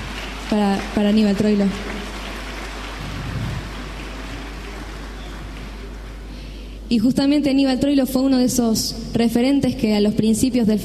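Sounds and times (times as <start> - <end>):
audience applause: 0.0 - 6.4
speech: 0.5 - 2.0, 6.9 - 10.8.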